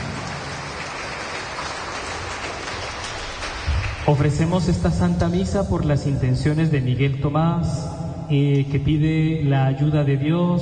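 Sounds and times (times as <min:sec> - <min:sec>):
audience clapping: 0:00.0 - 0:05.5
speech: 0:04.0 - 0:10.6.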